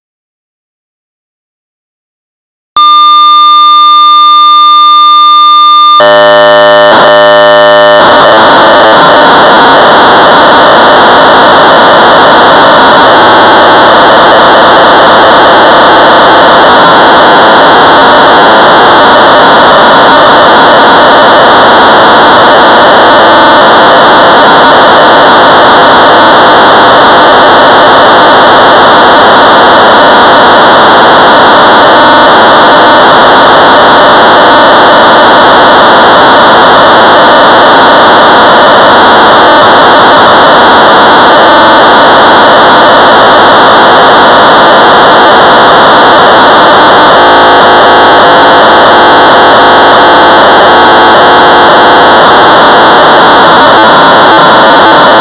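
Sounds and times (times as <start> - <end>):
Sorcerer BASIC program data tones at 1200 baud: 2.7 - 55.1.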